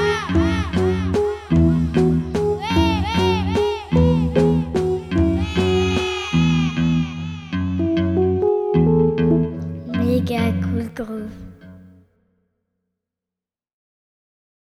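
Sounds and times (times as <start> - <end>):
groove music: 0.0 - 11.6.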